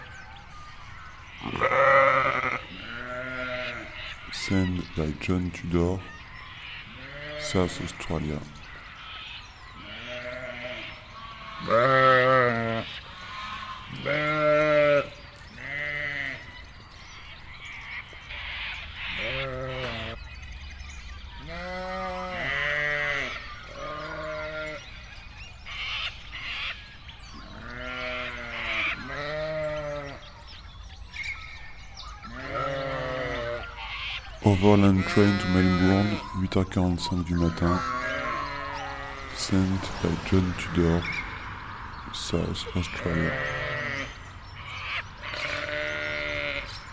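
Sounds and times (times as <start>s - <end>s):
Suffolk sheep bleating at feeding time: 1.4s - 5.4s, 6.9s - 8.1s, 9.8s - 16.5s, 19.1s - 20.2s, 21.4s - 24.8s, 27.5s - 30.2s, 32.3s - 33.8s, 34.6s - 36.4s, 37.2s - 41.7s, 42.3s - 44.2s, 45.2s - 46.9s
speech: 4.5s - 6.2s, 7.5s - 8.6s, 11.7s - 13.0s, 14.0s - 14.4s, 34.5s - 38.2s, 39.5s - 41.2s, 42.3s - 43.6s.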